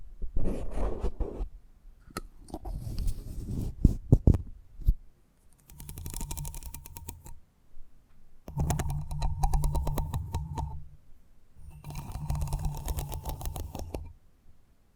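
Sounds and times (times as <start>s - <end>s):
scratchy rubbing strokes of an eardrum massage: 0.4s - 1.5s, 2.6s - 4.0s, 5.6s - 7.4s, 8.5s - 11.0s, 11.6s - 14.2s
soft airy brushing: 5.6s - 7.4s, 8.5s - 11.0s, 11.6s - 14.2s
low hum: 8.5s - 14.2s.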